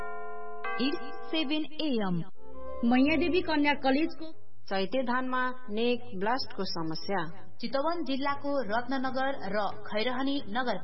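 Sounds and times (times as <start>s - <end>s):
radio time-signal chime marking 7 a.m. on a Nepali station: 0.0s - 1.9s
speech: 0.8s - 10.8s.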